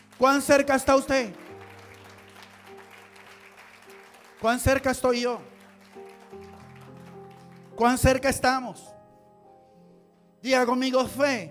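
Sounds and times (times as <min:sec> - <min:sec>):
crowd applauding: 0:00.0 - 0:08.4
speech: 0:00.2 - 0:01.4, 0:04.4 - 0:05.5, 0:07.8 - 0:09.0, 0:10.4 - 0:11.5.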